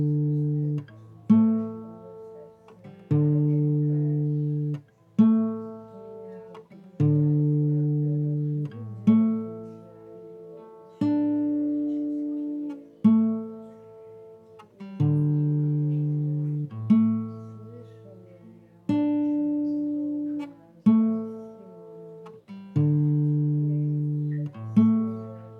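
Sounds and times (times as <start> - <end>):
guitar playing: 0.0 - 25.5.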